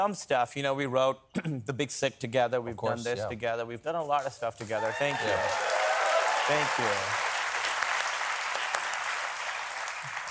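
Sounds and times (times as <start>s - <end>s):
speech: 0.0s - 5.8s, 6.5s - 7.2s
audience applause: 4.7s - 10.3s.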